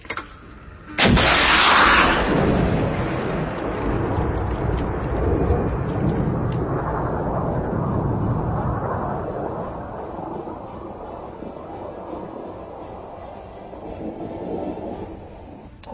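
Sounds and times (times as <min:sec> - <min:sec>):
loud blast striking an enemy tank: 0:00.2 - 0:15.5
weapons fire striking an enemy tank: 0:00.9 - 0:05.9.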